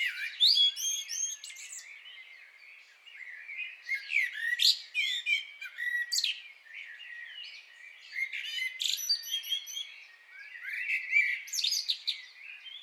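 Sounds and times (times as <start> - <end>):
common blackbird song: 0.0 - 12.8.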